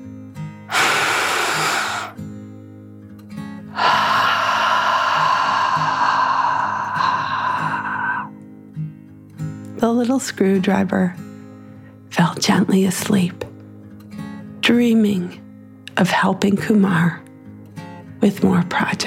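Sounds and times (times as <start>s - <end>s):
deep calming dragon breath in and out: 0.7s - 2.2s, 3.7s - 8.4s
speech: 9.8s - 11.2s, 12.2s - 13.5s, 14.7s - 15.4s, 16.0s - 17.2s, 18.2s - 19.0s.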